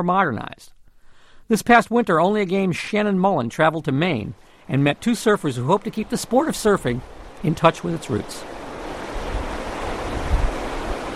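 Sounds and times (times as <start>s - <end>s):
speech: 0.0s - 0.8s, 1.5s - 8.5s
Atlantic surf breaking on the Maine coast in winter: 3.5s - 11.1s
gusty wind buffeting the microphone: 8.5s - 11.1s.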